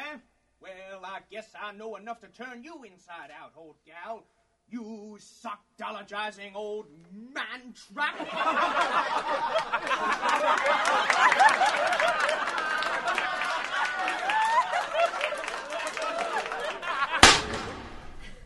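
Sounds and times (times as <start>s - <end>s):
speech: 1.1s - 12.6s
people laughing: 8.0s - 17.3s, 18.2s - 18.4s
gunshot in a radio drama of Lincoln's assassination: 17.2s - 18.4s.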